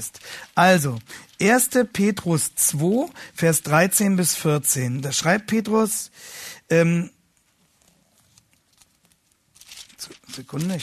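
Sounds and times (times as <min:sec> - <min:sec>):
pages of a Bible being flipped: 0:00.0 - 0:03.9, 0:07.6 - 0:10.8
speech: 0:00.0 - 0:07.2, 0:10.0 - 0:10.8.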